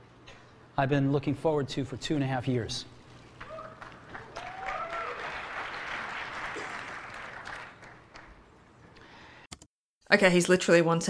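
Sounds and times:
speech: 0:00.8 - 0:03.0, 0:10.1 - 0:11.0
crowd applauding: 0:03.4 - 0:08.4.

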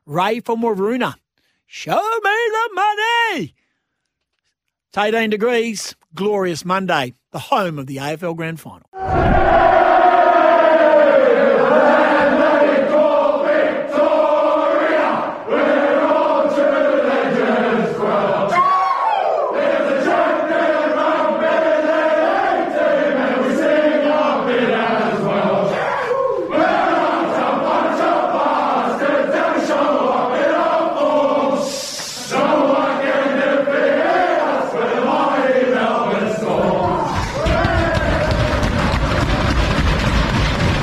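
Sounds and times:
speech: 0:00.1 - 0:03.6, 0:04.9 - 0:09.3
stadium crowd cheering after team wins: 0:09.0 - 0:31.4, 0:32.3 - 0:40.8.

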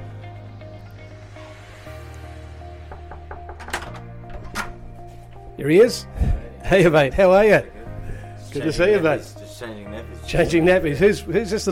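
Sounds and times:
knocking on a front door: 0:02.9 - 0:03.8
speech: 0:05.6 - 0:07.8, 0:08.5 - 0:11.7.

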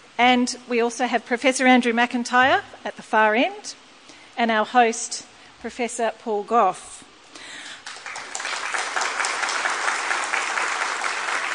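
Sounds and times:
speech: 0:00.2 - 0:03.8, 0:04.4 - 0:07.0
audience clapping: 0:07.8 - 0:11.5.

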